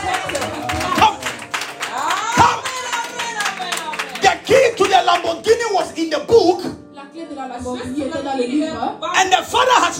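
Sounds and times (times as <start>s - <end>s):
hands clapping: 0.0s - 6.0s
speech: 7.2s - 9.9s.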